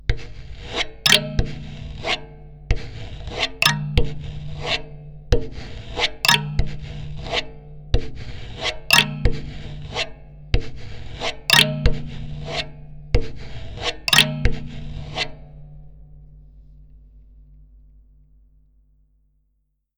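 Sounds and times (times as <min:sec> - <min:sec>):
sandpaper kalimba: 0:01.1 - 0:02.2, 0:03.6 - 0:07.5, 0:08.9 - 0:10.1, 0:11.4 - 0:15.4.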